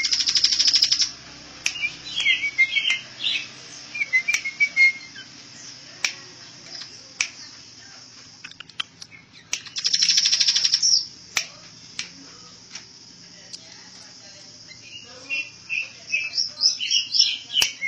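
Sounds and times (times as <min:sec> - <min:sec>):
bird singing trill, chirps and whistles: 0:00.0 - 0:07.7, 0:08.5 - 0:11.2, 0:14.6 - 0:17.8.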